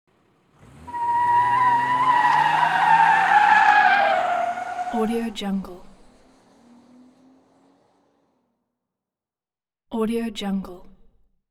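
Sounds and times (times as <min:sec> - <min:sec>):
automobile accelerating quickly: 0:00.1 - 0:08.6
automobile tires skidding: 0:00.1 - 0:08.6.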